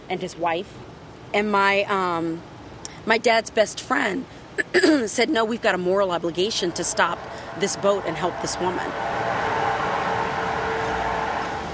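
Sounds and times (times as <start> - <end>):
speech: 0.1 - 9.2
construction noise drone: 6.1 - 11.7.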